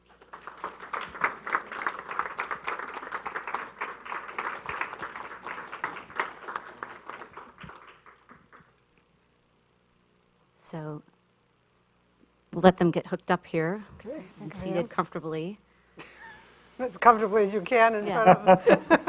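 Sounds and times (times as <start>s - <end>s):
audience applause welcoming speakers: 0.0s - 8.7s
speech: 10.7s - 11.1s, 12.6s - 15.6s, 16.8s - 19.0s
laughter: 18.1s - 19.0s.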